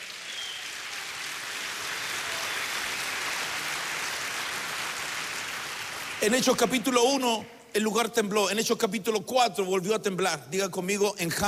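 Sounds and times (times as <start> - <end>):
audience applauding: 0.0 - 6.9
speech: 6.2 - 11.4.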